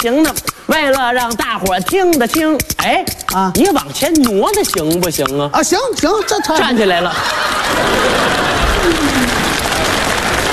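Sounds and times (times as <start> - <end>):
speech: 0.0 - 10.0
laughter: 6.1 - 10.0
audience applause for a traditional Chinese comic rhythmic-storytelling performance: 7.2 - 10.5.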